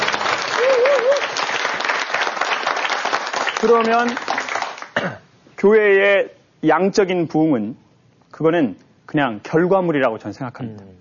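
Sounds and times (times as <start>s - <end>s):
applause: 0.0s - 5.0s
speech: 3.6s - 4.3s, 5.0s - 10.9s.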